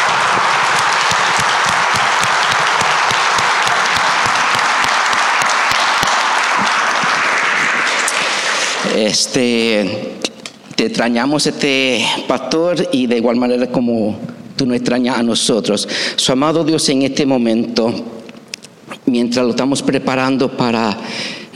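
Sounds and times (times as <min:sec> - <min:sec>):
audience applause: 0:00.0 - 0:09.3
speech: 0:09.0 - 0:10.2, 0:10.8 - 0:18.2, 0:19.1 - 0:21.5.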